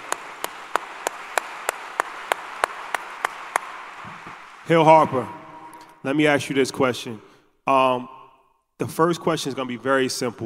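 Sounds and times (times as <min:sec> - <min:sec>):
steady evenly spaced clapping: 0:00.0 - 0:05.9
speech: 0:04.7 - 0:05.4, 0:06.0 - 0:08.2, 0:08.8 - 0:10.4.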